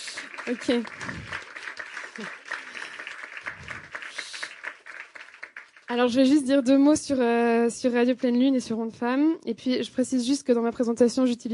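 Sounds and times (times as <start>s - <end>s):
audience applause: 0.0s - 5.9s
speech: 0.4s - 1.4s, 2.2s - 2.4s, 5.9s - 11.5s.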